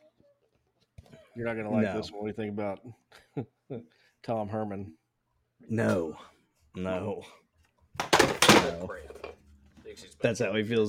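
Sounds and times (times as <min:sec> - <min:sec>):
speech: 0:01.4 - 0:05.0, 0:05.6 - 0:07.4, 0:08.7 - 0:09.1, 0:10.0 - 0:10.8
shelf and its contents knocked off a wall: 0:08.0 - 0:08.9.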